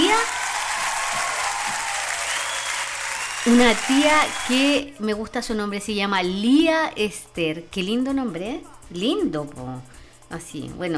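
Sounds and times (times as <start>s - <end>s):
audience applause: 0.0s - 4.7s
speech: 3.4s - 10.9s.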